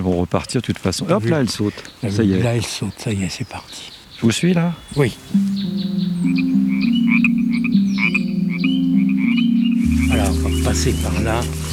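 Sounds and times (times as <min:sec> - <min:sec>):
speech: 0:00.0 - 0:06.4, 0:10.7 - 0:11.7
small frog croaking: 0:04.7 - 0:11.7.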